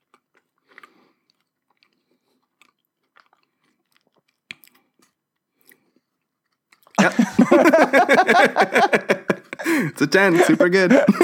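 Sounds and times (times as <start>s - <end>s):
chewing a Reese's peanut butter cup with Reese's Pieces candy inside: 0.0s - 7.0s
laughter: 7.0s - 11.2s
speech: 7.1s - 11.2s.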